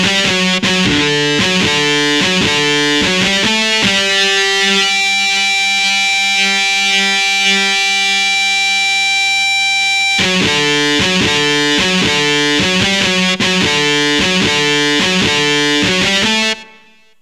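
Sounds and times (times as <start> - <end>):
electric guitar power chord: 0.0 - 17.1.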